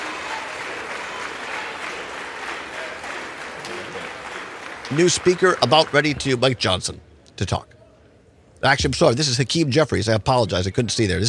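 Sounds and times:
House chamber applause for the new Speaker: 0:00.0 - 0:06.5
speech: 0:04.9 - 0:07.7, 0:08.6 - 0:11.2.

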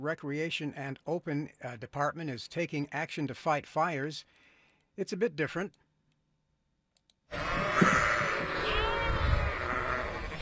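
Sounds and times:
speech: 0:00.0 - 0:04.4, 0:05.0 - 0:05.8, 0:07.3 - 0:08.0
flock of sheep bleating: 0:07.3 - 0:10.4.

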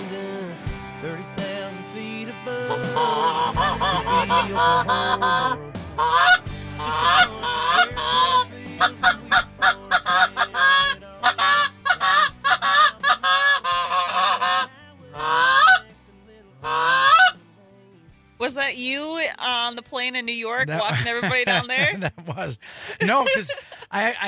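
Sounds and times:
flock of geese honking: 0:02.7 - 0:15.9, 0:16.6 - 0:17.4
speech: 0:03.5 - 0:06.4, 0:18.8 - 0:24.2
laughter: 0:20.6 - 0:24.2.

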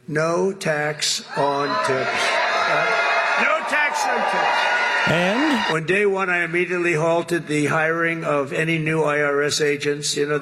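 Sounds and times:
speech: 0:00.1 - 0:10.4
rally crowd in Las Vegas cheering President Trump: 0:01.3 - 0:05.8
overlapping raised voices: 0:04.9 - 0:05.8.

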